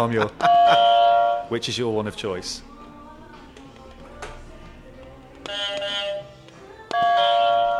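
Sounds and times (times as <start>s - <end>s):
speech: 0.0s - 0.8s, 1.5s - 2.7s
quiz buzzer being pressed: 0.5s - 1.5s, 5.4s - 7.7s.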